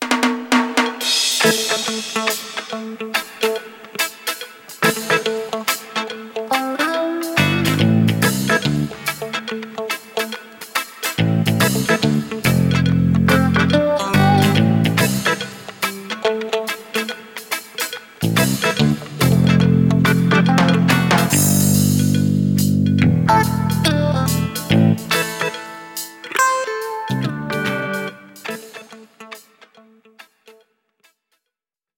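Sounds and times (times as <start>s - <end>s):
reggae music: 0.0s - 30.0s.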